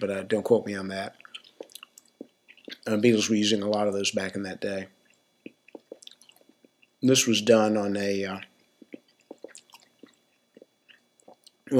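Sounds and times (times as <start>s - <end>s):
speech: 0.0s - 1.2s, 2.8s - 5.0s, 7.0s - 8.5s
wet chewing of gum: 1.1s - 3.0s, 5.0s - 7.0s, 8.8s - 11.7s.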